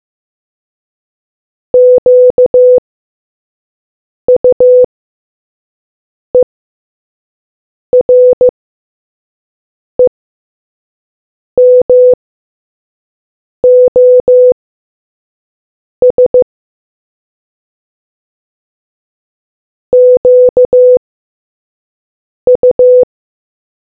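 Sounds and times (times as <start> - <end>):
morse code beeps: 1.8 - 2.8, 4.3 - 4.9, 8.0 - 8.5, 11.6 - 12.2, 13.6 - 14.6, 16.0 - 16.4, 20.0 - 21.0, 22.5 - 23.1.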